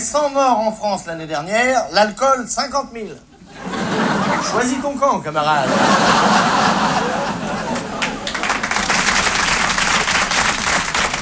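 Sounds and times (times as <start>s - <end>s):
speech: 0.1s - 3.7s, 4.4s - 7.2s
laughter: 3.4s - 9.0s
audience applause: 5.9s - 11.2s.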